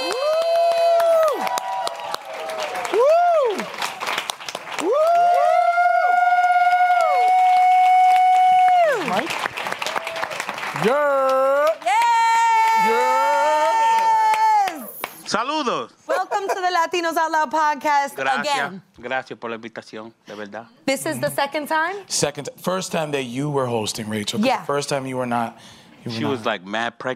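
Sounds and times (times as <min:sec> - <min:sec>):
audience clapping and cheering for a guest at a Latino film festival in New York: 0:00.0 - 0:15.4
speech: 0:16.9 - 0:27.1.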